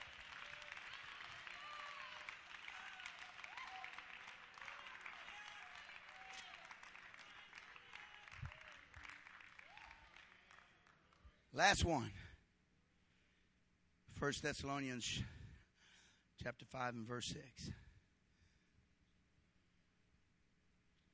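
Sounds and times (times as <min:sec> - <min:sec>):
scattered voices and cheers: 0:00.0 - 0:10.9
audience clapping hands: 0:00.0 - 0:11.7
speech: 0:11.6 - 0:12.3, 0:14.2 - 0:15.4, 0:16.4 - 0:17.8.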